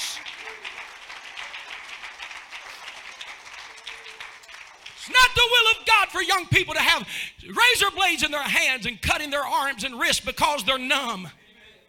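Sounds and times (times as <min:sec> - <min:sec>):
audience clapping hands: 0:00.0 - 0:05.8
speech: 0:05.0 - 0:11.4.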